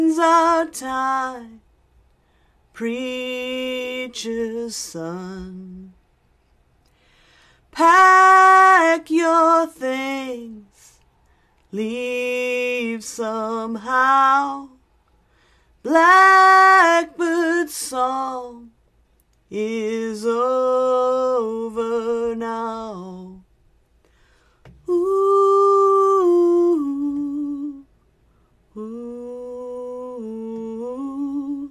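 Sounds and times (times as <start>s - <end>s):
woman singing a song cover: 0.0s - 1.6s, 2.8s - 6.0s, 7.7s - 11.0s, 11.7s - 14.8s, 15.8s - 18.7s, 19.5s - 23.5s, 24.8s - 27.9s, 28.7s - 31.7s.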